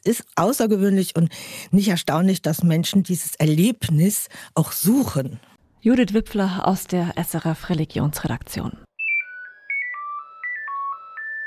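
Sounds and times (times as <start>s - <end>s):
speech: 0.0s - 8.9s
Nokia 9000 Communicator mobile phone ringtone: 9.0s - 11.4s.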